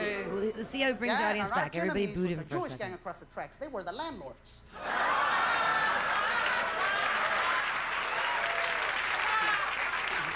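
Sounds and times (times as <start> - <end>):
speech: 0.6 - 5.4
crowd applause: 4.8 - 10.3.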